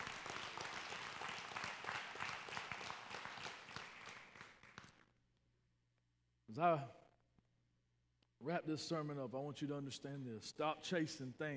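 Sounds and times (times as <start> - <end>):
audience clapping: 0.0 - 5.1
speech: 6.6 - 7.0, 8.4 - 11.5.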